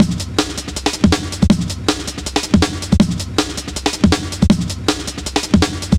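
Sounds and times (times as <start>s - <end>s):
drum loop: 0.0s - 5.9s.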